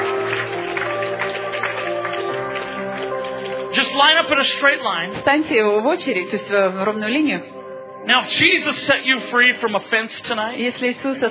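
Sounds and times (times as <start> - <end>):
audience giving a hand clap: 0.0 - 5.3
speech: 4.0 - 11.2.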